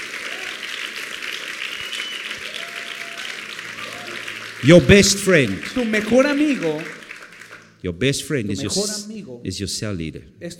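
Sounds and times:
congregation applauding at a church service: 0.0 - 8.3
speech: 4.6 - 7.0, 7.8 - 10.5.

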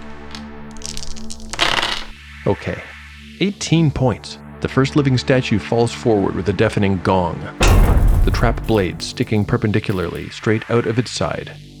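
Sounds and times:
rolling a heap of dice: 0.2 - 2.2
speech: 2.5 - 11.7.

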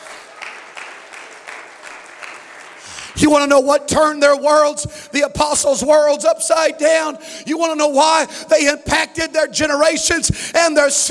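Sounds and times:
audience clapping hands: 0.0 - 3.4
speech: 3.1 - 11.1.

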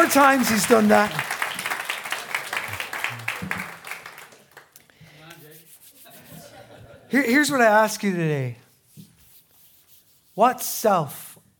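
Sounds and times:
speech: 0.0 - 1.4, 7.1 - 8.6, 10.4 - 11.5
crowd applause: 0.0 - 4.8
laughter: 6.0 - 7.2.

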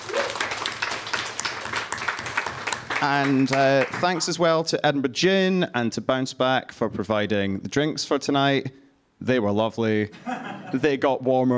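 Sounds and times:
faint cheering or voices: 0.0 - 1.2
audience applause: 0.0 - 4.4
speech: 3.0 - 11.5
laughter: 10.1 - 11.0.

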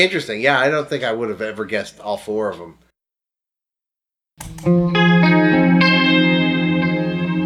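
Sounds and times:
speech: 0.0 - 2.8, 4.4 - 5.0
electric guitar through a Dispatch Master delay-reverb and chorus effect: 4.4 - 7.4.

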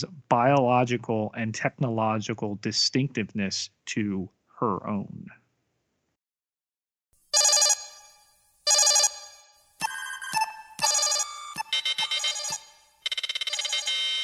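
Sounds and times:
speech: 0.0 - 5.4
alarm signal: 8.7 - 14.2.

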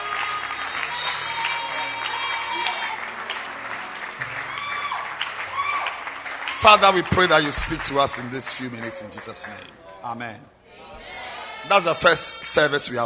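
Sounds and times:
church congregation clapping hands at a service: 0.0 - 9.8
speech: 6.6 - 10.6, 11.6 - 13.0.

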